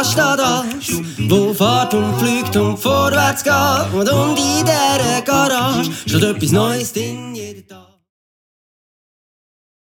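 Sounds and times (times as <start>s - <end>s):
garage music: 0.0s - 6.7s.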